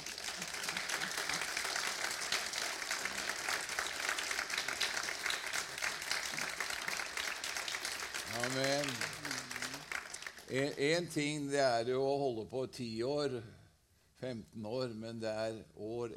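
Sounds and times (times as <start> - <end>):
audience applause: 0.0 - 10.7
speech: 10.5 - 13.6, 14.2 - 16.1.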